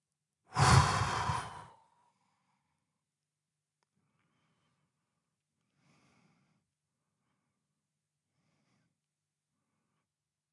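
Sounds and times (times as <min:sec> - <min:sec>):
loud exhale after holding breath during a relaxation exercise: 0:00.5 - 0:02.0.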